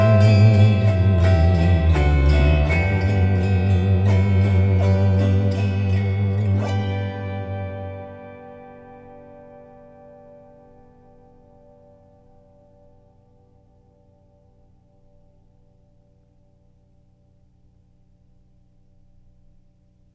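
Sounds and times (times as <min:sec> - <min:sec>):
theremin: 0:00.0 - 0:09.0.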